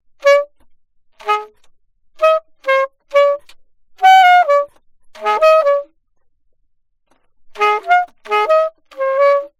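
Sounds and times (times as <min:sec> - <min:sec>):
alto saxophone: 0:00.2 - 0:00.6, 0:01.2 - 0:06.0, 0:07.5 - 0:09.5.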